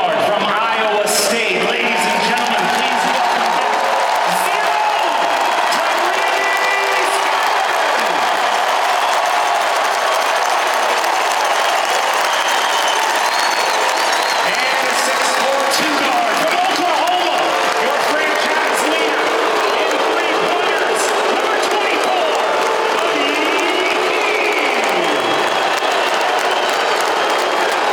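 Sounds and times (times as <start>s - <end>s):
arena crowd cheering in standing ovation: 0.0s - 27.9s.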